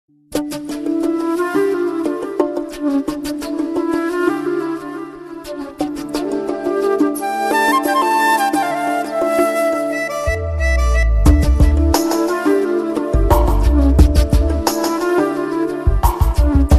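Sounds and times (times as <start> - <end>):
music: 0.1 - 16.7.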